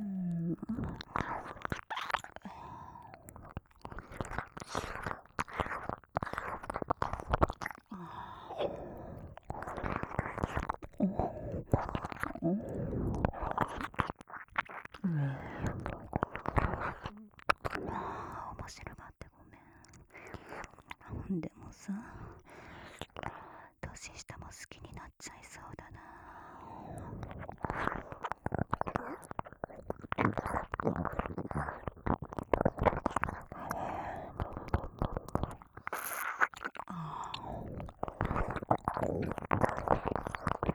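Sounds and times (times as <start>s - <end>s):
ear licking alarm: 0.0s - 18.4s, 26.9s - 40.7s.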